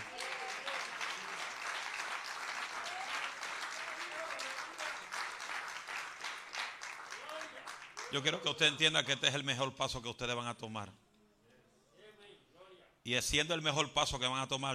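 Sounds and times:
audience applause: 0.0s - 8.9s
speech: 8.1s - 11.0s, 13.0s - 14.7s.

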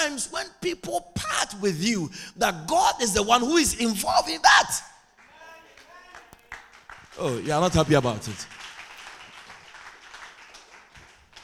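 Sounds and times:
speech: 0.0s - 4.9s, 7.2s - 8.6s
audience clapping: 5.2s - 11.4s.

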